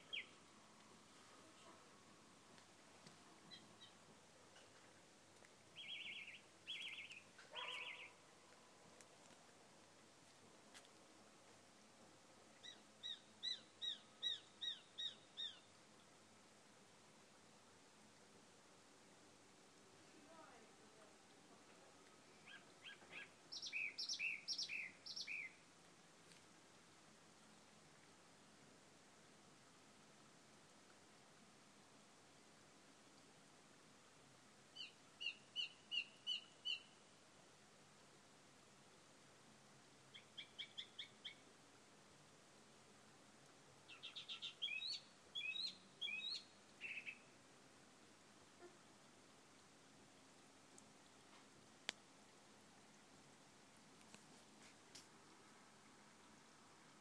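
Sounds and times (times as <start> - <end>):
birds singing in the evening: 0.0 - 0.4, 5.8 - 8.2, 12.6 - 15.7, 22.4 - 25.6, 34.8 - 37.0, 40.1 - 41.4, 43.9 - 47.3.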